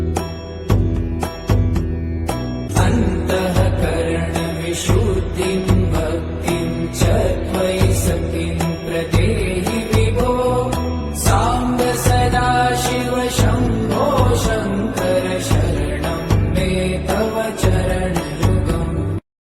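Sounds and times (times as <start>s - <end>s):
Hindu devotional song ringtone: 0.1s - 19.2s.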